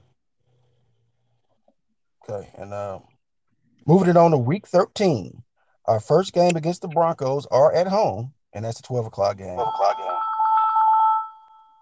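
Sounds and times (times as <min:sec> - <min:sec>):
speech: 0:02.3 - 0:03.1, 0:03.8 - 0:09.9
ringing chime: 0:09.6 - 0:11.8.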